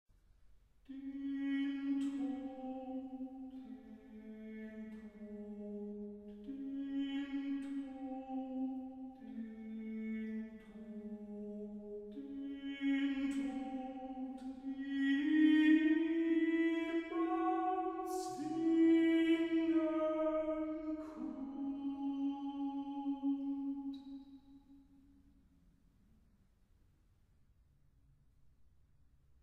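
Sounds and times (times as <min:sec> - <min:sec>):
single voice singing a chorale: 0:00.9 - 0:24.2.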